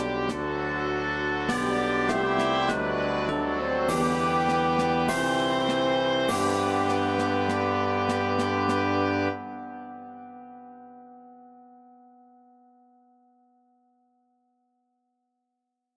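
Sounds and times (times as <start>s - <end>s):
oboe melody: 0.0s - 10.4s.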